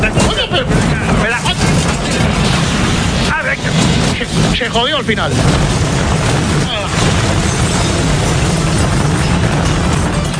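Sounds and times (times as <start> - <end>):
helicopter engine running: 0.0 - 10.3
speech: 4.6 - 5.8.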